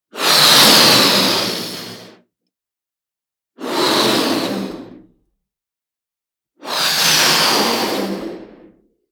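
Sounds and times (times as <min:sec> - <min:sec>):
balloon inflating: 0:00.1 - 0:02.1, 0:03.6 - 0:05.1, 0:06.6 - 0:08.7.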